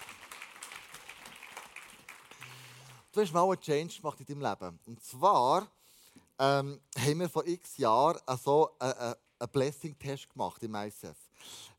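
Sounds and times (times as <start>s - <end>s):
crowd applause: 0.0s - 3.1s
speech: 3.2s - 5.8s, 6.4s - 11.7s.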